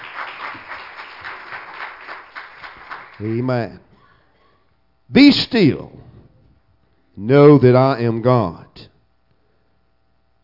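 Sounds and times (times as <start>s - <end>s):
crowd clapping in praise: 0.0s - 3.6s
speech: 3.2s - 3.9s, 5.1s - 6.0s, 7.2s - 8.9s.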